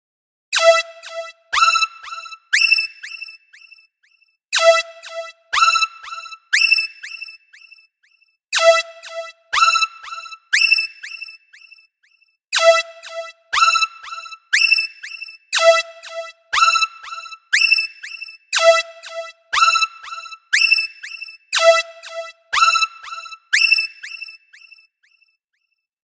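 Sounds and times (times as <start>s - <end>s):
ringtone: 0.6s - 3.4s, 4.6s - 7.4s, 8.6s - 11.4s, 12.6s - 24.4s.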